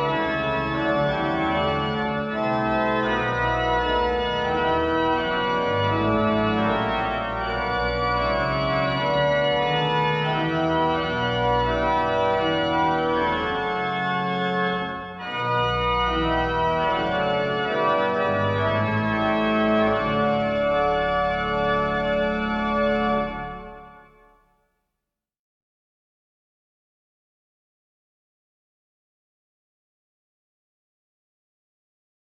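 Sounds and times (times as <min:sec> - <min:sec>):
chorale prelude music: 0:00.0 - 0:24.4.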